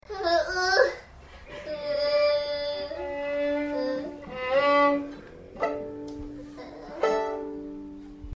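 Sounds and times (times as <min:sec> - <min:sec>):
violin: 0:01.4 - 0:08.3.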